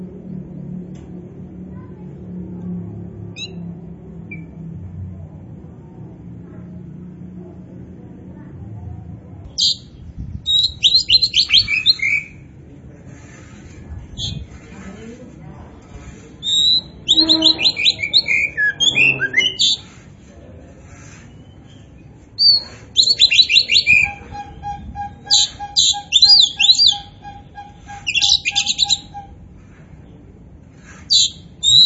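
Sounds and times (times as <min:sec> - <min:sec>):
Oriental magpie-robin song of whistles and chatter: 0:03.4 - 0:03.7, 0:09.6 - 0:12.5, 0:13.1 - 0:15.1, 0:16.0 - 0:20.1, 0:20.9 - 0:29.4, 0:30.8 - 0:31.8.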